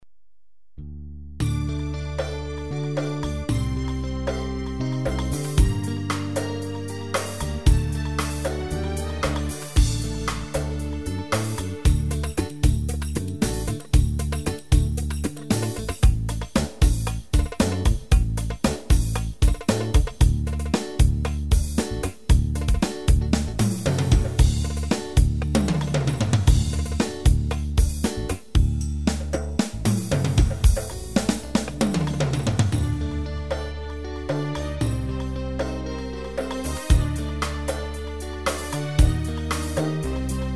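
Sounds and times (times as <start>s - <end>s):
Ketron bolero rhythm: 1.4s - 40.5s.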